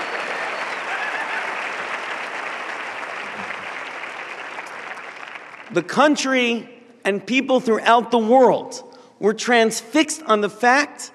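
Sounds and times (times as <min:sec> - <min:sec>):
audience applause: 0:00.0 - 0:05.8
speech: 0:05.7 - 0:11.1.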